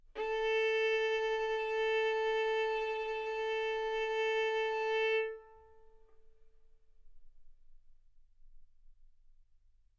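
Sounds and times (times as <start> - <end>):
violin bowed arco notes: 0.1 - 6.0.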